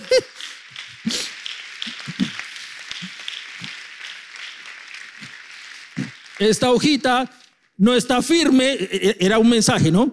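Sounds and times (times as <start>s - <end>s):
audience applause: 0.0s - 7.7s
speech: 6.4s - 10.1s.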